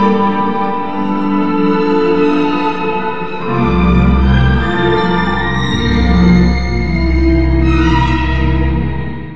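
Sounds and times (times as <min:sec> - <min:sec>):
string section violins playing a verse: 0:00.0 - 0:09.2.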